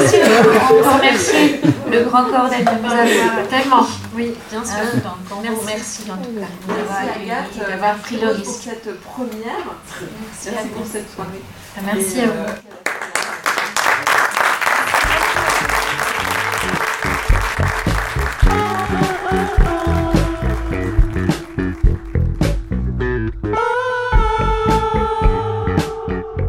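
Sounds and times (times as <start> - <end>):
laughter: 0.0 - 3.8, 14.8 - 20.9
speech: 0.7 - 13.2
audience applause: 12.8 - 22.8
sustained musical tones: 15.1 - 26.4.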